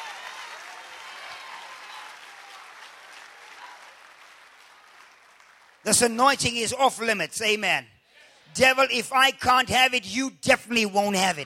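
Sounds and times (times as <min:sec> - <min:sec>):
audience clapping hands: 0:00.0 - 0:06.2
speech: 0:05.8 - 0:07.9, 0:08.5 - 0:11.4.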